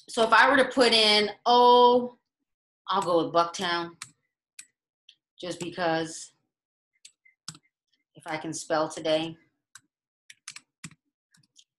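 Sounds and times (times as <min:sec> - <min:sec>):
speech: 0:00.0 - 0:02.2, 0:02.9 - 0:04.1, 0:05.4 - 0:06.3, 0:08.2 - 0:09.4
typing on a computer keyboard: 0:09.8 - 0:11.7.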